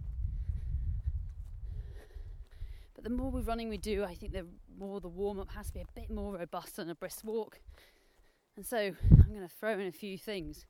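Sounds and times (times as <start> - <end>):
heavy breathing while walking uphill: 0.3 - 3.0, 7.6 - 9.2
speech: 3.0 - 7.9, 8.6 - 10.6.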